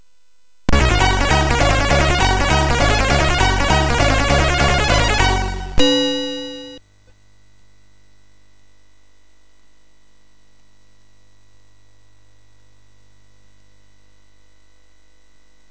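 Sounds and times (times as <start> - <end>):
MOS6581R3 chip music demo: 0.7 - 6.8.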